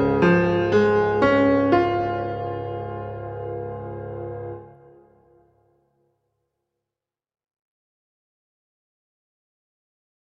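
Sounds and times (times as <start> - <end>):
song accompaniment: 0.0 - 5.4.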